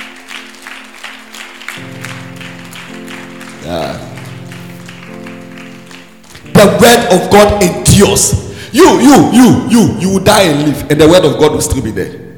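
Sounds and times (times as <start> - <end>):
audience clapping: 0.0 - 7.6
speech: 3.7 - 4.1, 6.6 - 12.2.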